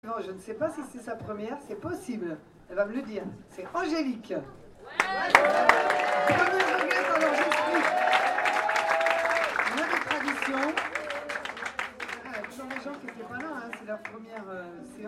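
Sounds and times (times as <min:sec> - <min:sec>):
speech: 0:00.0 - 0:06.8, 0:12.8 - 0:15.0
audience applause: 0:04.9 - 0:14.2.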